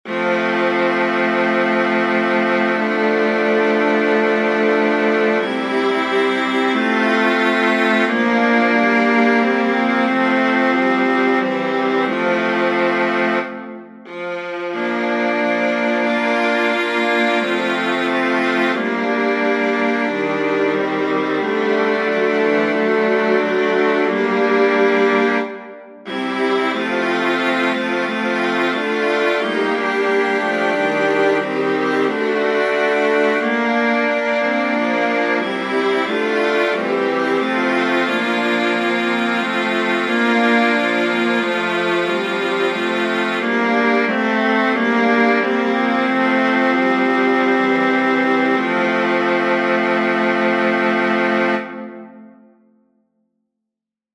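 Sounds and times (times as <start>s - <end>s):
viola quartet: 0.0s - 52.4s.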